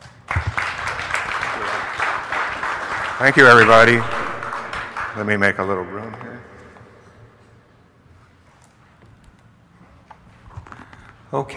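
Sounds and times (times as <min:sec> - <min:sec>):
audience applause welcoming a speaker: 0:00.0 - 0:05.8
speech: 0:03.2 - 0:04.2, 0:05.2 - 0:06.5, 0:11.3 - 0:11.5.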